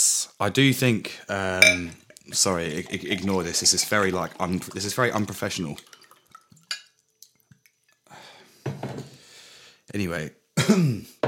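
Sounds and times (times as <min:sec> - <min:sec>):
speech: 0:00.4 - 0:06.0, 0:09.9 - 0:11.2
water pouring into a cup: 0:01.6 - 0:08.0.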